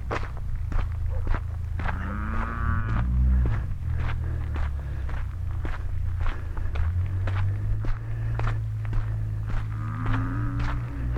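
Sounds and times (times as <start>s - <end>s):
footsteps: 0.0s - 11.1s
cattle mooing: 1.8s - 3.7s, 9.2s - 11.1s.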